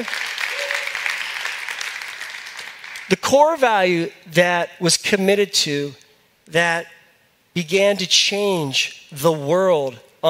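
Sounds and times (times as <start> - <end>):
speech: 0.0 - 0.3, 3.1 - 7.0, 7.6 - 10.2
audience clapping: 0.0 - 3.2.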